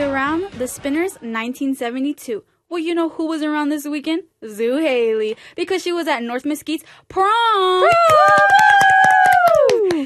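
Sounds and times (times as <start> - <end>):
speech: 0.2 - 10.0
two people cheering woo: 7.8 - 10.0.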